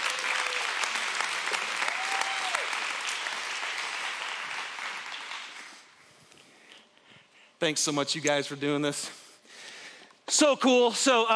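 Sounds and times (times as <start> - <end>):
audience clapping at a church gathering: 0.0 - 6.0
speech: 7.6 - 9.2, 10.3 - 11.3.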